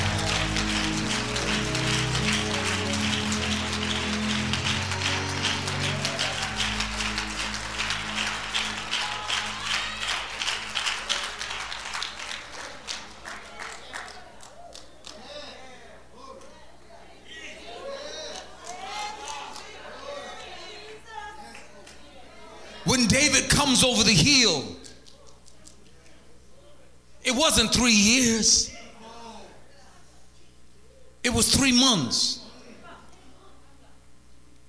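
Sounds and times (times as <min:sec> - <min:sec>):
audience clapping hands: 0:00.0 - 0:15.2
speech: 0:23.2 - 0:24.8, 0:27.3 - 0:28.7, 0:31.4 - 0:32.4.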